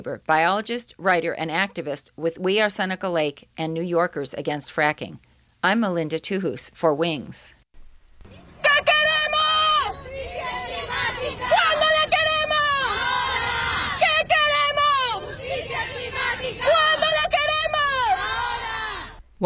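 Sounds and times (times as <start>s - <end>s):
speech: 0.0s - 7.6s
protest march crowd chanting: 8.3s - 19.2s.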